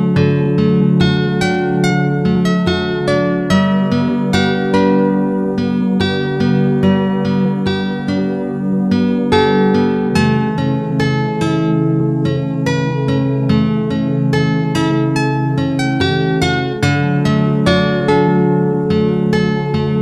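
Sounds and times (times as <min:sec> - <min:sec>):
Hawaiian guitar tuned to 432 Hz: 0:00.0 - 0:20.0.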